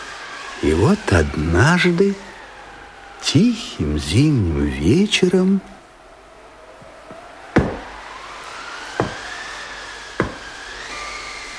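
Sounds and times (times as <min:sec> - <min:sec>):
speech: 0:00.6 - 0:02.3, 0:03.2 - 0:05.8
knocking on a door: 0:07.6 - 0:07.9, 0:09.0 - 0:09.2, 0:10.2 - 0:10.4.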